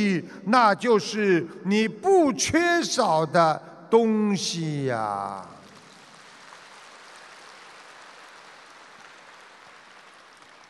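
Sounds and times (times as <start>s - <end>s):
speech: 0.0s - 5.5s
sparse audience applause: 5.4s - 10.6s.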